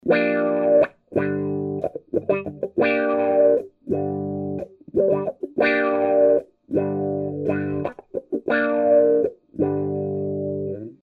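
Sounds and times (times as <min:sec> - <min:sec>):
guitar: 0:00.0 - 0:11.0.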